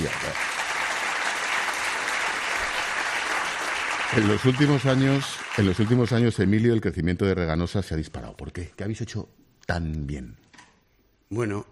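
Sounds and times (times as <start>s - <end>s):
applause: 0.0s - 6.4s
speech: 4.1s - 10.4s, 11.3s - 11.6s.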